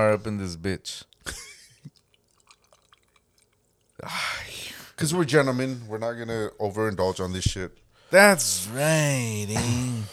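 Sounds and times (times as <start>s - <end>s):
speech: 0.0s - 1.5s, 4.0s - 10.1s
person gulping down a drink: 1.2s - 4.1s.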